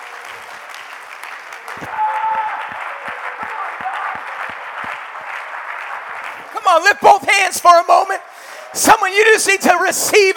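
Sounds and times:
audience clapping hands: 0.0 - 8.2
speech: 6.8 - 10.3.

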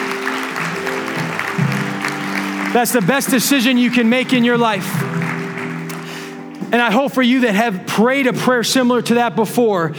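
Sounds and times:
audience applauding: 0.0 - 6.7
speech: 2.8 - 5.2, 6.7 - 9.9.

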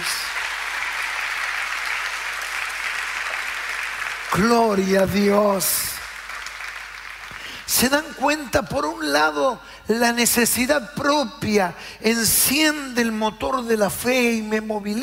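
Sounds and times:
audience applause: 0.0 - 7.7
speech: 4.3 - 6.0, 7.8 - 15.0.

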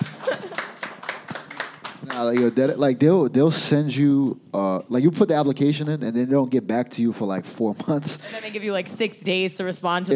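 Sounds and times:
scattered clapping from a small group: 0.0 - 2.7
speech: 2.0 - 10.1.

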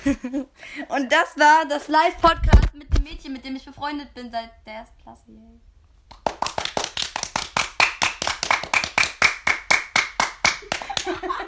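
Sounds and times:
speech: 0.0 - 6.4, 11.0 - 11.4
hand clapping: 6.1 - 11.3
laughter: 10.7 - 11.4.

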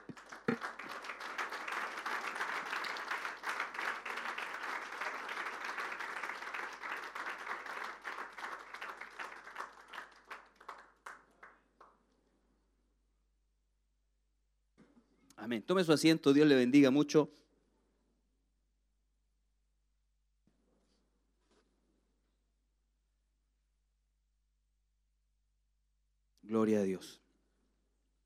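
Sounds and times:
audience applause: 0.0 - 11.6
speech: 15.4 - 17.4.

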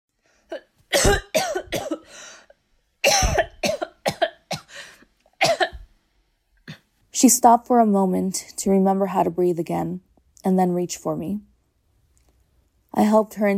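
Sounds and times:
speech: 0.5 - 1.2, 7.2 - 11.5, 13.0 - 13.5
person coughing: 0.5 - 2.1, 3.0 - 5.8.

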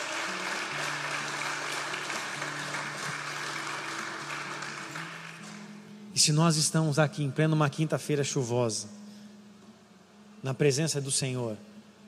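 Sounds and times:
audience applause: 0.0 - 5.7
speech: 6.2 - 9.0, 10.4 - 11.7.

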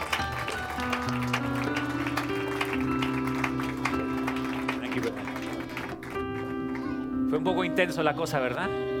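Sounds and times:
audience applause: 0.0 - 6.8
speech: 7.4 - 8.9.

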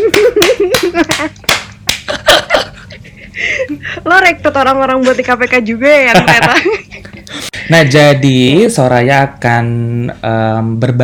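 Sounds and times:
hand clapping: 0.0 - 2.4
speech: 4.1 - 6.8, 7.7 - 11.0
laughter: 6.1 - 7.3.

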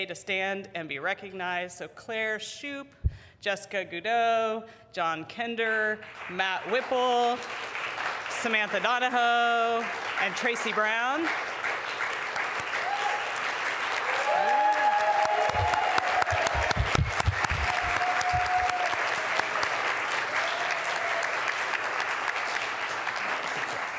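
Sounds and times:
speech: 0.0 - 7.8, 8.4 - 11.6
audience applause: 6.6 - 9.0, 9.7 - 23.9.

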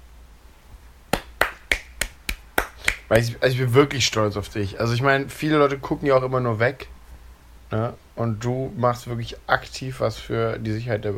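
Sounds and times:
fingers snapping as applause: 1.1 - 3.2
speech: 3.1 - 7.0, 7.7 - 11.1.

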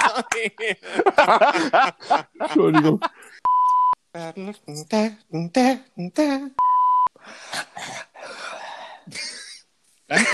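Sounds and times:
laughter: 0.0 - 3.4, 9.1 - 10.3
speech: 0.2 - 3.2, 4.2 - 8.1, 10.1 - 10.3
steady beep tone: 3.4 - 4.0, 6.6 - 7.1
rough loud breathing into a microphone: 7.2 - 9.1.

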